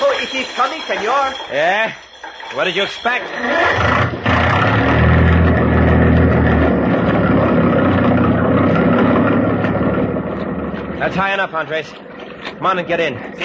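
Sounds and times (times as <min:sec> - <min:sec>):
speech: 0:00.4 - 0:04.7, 0:11.0 - 0:13.4
motor starting and running: 0:03.5 - 0:11.2.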